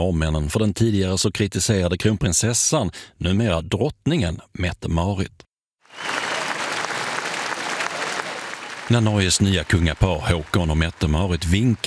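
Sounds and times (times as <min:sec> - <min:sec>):
speech: 0:00.0 - 0:06.2, 0:08.9 - 0:11.8
large crowd cheering and applauding: 0:05.9 - 0:11.8.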